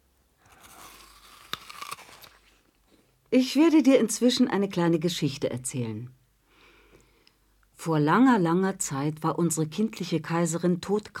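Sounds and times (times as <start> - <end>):
person biting into and eating fruit: 0.4 - 2.6
speech: 3.3 - 6.2, 7.8 - 11.1.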